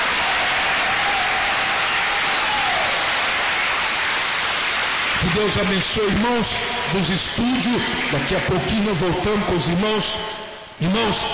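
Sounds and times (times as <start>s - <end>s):
audience clapping hands: 0.0s - 6.9s
speech: 5.3s - 11.3s.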